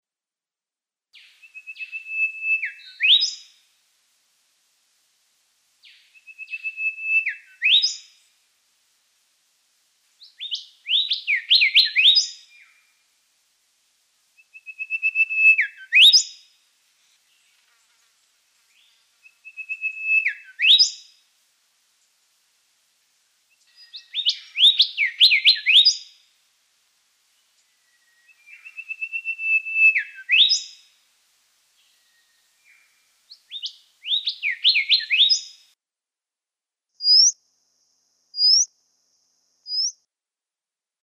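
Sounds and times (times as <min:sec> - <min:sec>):
golden whistler: 0:01.2 - 0:03.6, 0:05.8 - 0:08.3, 0:10.2 - 0:12.9, 0:14.4 - 0:16.5, 0:18.8 - 0:21.2, 0:23.6 - 0:26.2, 0:27.6 - 0:31.0, 0:31.8 - 0:35.7, 0:37.0 - 0:37.4, 0:38.4 - 0:38.7, 0:39.6 - 0:40.0.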